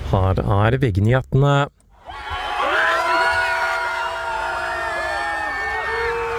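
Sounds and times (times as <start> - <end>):
speech: 0.1 - 1.8
crowd cheering outside a hotel in Nydalen: 2.0 - 6.3.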